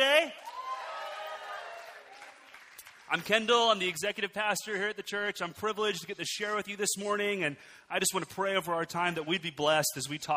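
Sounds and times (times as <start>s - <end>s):
audience clapping: 0.0s - 4.5s
speech: 3.1s - 10.3s.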